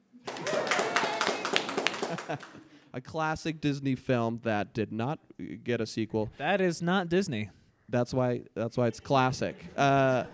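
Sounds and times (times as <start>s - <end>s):
crowd voices: 0.2s - 2.1s
audience applause: 0.2s - 2.7s
laughter: 0.2s - 2.9s, 8.8s - 10.3s
speech: 2.3s - 10.3s.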